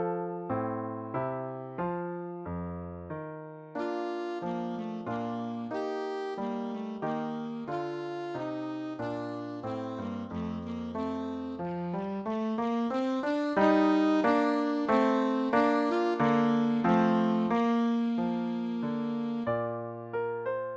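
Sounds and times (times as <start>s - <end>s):
piano accompanying a minuet: 0.0s - 20.7s
alto saxophone playing a minuet: 3.8s - 20.2s.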